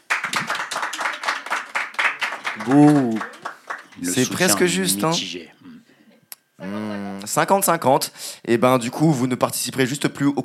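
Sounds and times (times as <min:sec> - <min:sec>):
audience applause: 0:00.0 - 0:04.6
speech: 0:02.6 - 0:03.4, 0:04.0 - 0:05.6, 0:06.6 - 0:10.4.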